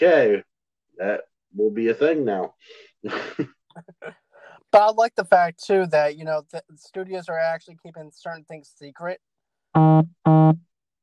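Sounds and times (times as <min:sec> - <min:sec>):
speech: 0:00.0 - 0:10.7
phone vibrating from incoming text: 0:09.8 - 0:10.7.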